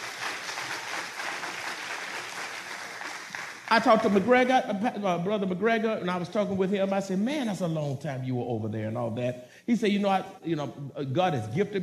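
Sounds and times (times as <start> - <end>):
audience clapping: 0.0 - 4.5
speech: 3.7 - 11.8.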